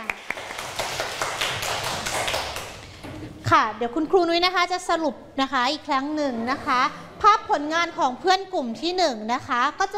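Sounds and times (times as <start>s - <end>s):
classroom of students applauding: 0.0s - 3.0s
speech: 3.5s - 9.9s.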